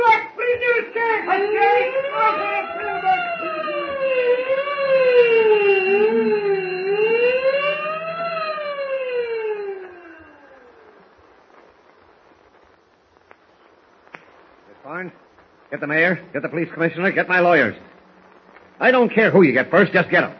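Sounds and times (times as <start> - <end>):
faint hiss: 0.0 - 20.3
prison escape alarm wailing: 0.8 - 11.0
speech: 15.8 - 17.9, 18.8 - 20.3.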